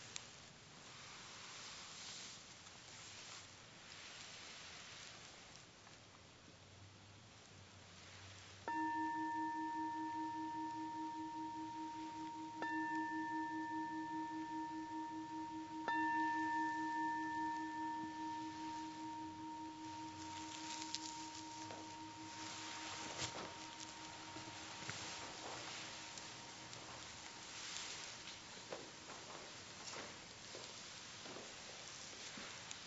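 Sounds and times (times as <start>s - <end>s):
soft rain-like hiss: 0.0s - 32.8s
meditation bell ringing: 8.7s - 29.1s.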